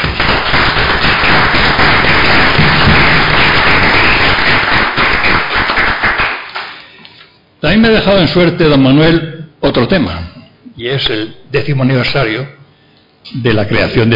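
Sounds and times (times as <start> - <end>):
audience applause: 0.0 - 6.8
speech: 7.7 - 12.6, 13.2 - 14.1.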